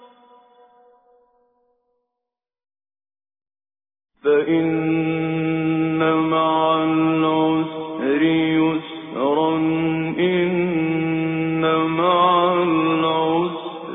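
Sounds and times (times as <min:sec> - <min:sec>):
Quran recitation with tajweed: 0:04.2 - 0:13.9.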